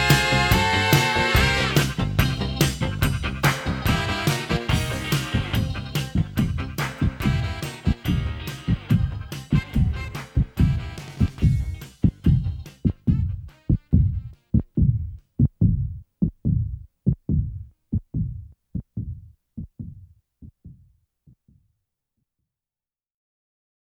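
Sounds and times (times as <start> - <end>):
classic rock electric harmonica in a club: 0.0 - 11.7
heartbeat sound effect: 0.0 - 21.6.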